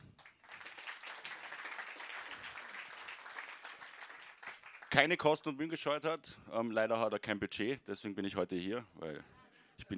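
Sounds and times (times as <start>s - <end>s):
audience applause: 0.2s - 5.0s
speech: 5.0s - 9.9s.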